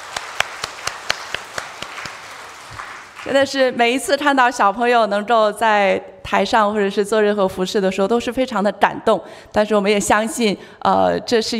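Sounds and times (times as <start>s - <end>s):
audience applause: 0.0s - 3.4s
speech: 3.2s - 11.5s.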